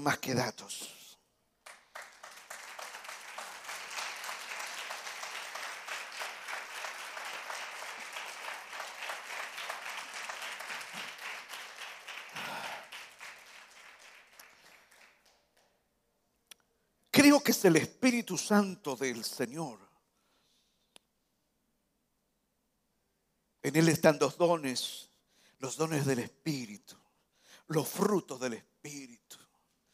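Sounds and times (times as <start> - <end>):
speech: 0.0 - 1.0, 17.5 - 19.9, 23.7 - 27.0, 27.7 - 29.1
audience applause: 1.6 - 15.7.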